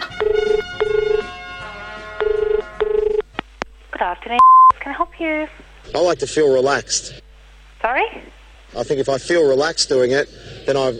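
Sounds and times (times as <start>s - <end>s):
telephone ringing on a prank call to a massage parlor: 0.0s - 1.3s, 2.2s - 3.2s
speech: 4.3s - 7.2s, 7.8s - 10.9s.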